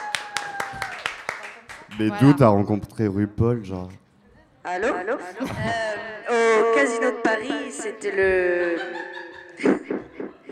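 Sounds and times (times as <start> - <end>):
small group handclaps: 0.0 - 2.1
speech: 2.0 - 4.0, 4.6 - 9.8
laughter: 4.8 - 6.1, 7.6 - 10.4.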